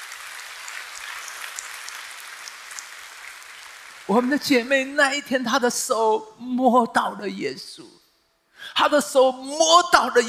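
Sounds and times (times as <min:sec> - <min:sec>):
audience applause: 0:00.0 - 0:04.7
speech: 0:04.1 - 0:08.0, 0:08.6 - 0:10.2.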